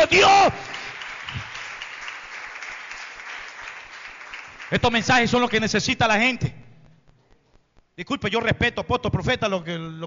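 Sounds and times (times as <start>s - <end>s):
speech: 0.0s - 0.7s, 4.7s - 6.6s, 8.0s - 10.0s
audience applauding: 0.1s - 5.5s.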